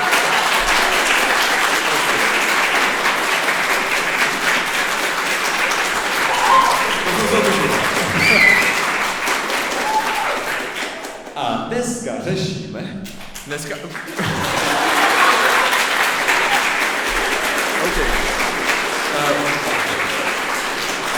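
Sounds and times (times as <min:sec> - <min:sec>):
laughter: 0:00.0 - 0:04.0, 0:06.2 - 0:10.4, 0:13.8 - 0:21.1
audience applause: 0:00.0 - 0:11.5, 0:13.2 - 0:21.1
whoops: 0:06.2 - 0:09.1, 0:09.7 - 0:10.6
speech: 0:12.2 - 0:14.7.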